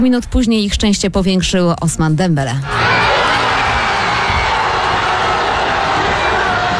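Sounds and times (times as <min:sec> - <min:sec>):
speech: 0:00.0 - 0:03.6
football fans cheering in French fan zones: 0:02.6 - 0:06.7.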